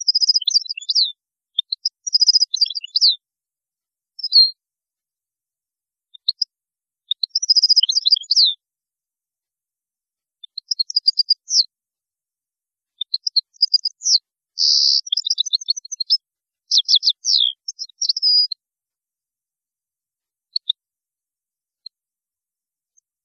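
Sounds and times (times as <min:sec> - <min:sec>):
European goldfinch song: 0:00.0 - 0:03.2, 0:04.2 - 0:04.6, 0:06.1 - 0:08.6, 0:10.4 - 0:11.7, 0:12.9 - 0:18.6, 0:20.5 - 0:20.8.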